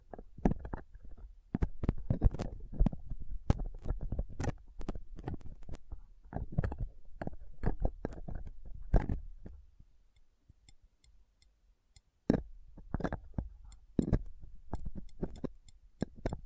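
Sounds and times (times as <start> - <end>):
picking and scraping a microphone with a dental pick, tweezers and cotton swab: 0.0 - 9.6, 12.3 - 16.4.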